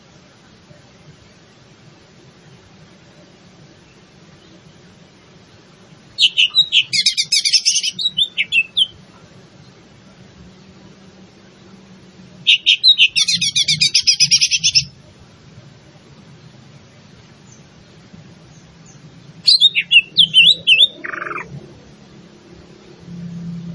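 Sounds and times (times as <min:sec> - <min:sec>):
leafbird cucak ijo singing rapid high chatter and twisting whistled notes: 0:06.2 - 0:09.0, 0:12.4 - 0:15.0, 0:18.4 - 0:21.5.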